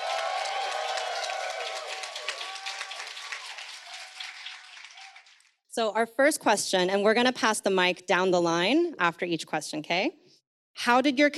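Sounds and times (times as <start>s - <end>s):
audience applause: 0.0s - 5.6s
speech: 5.8s - 10.2s, 10.8s - 11.3s.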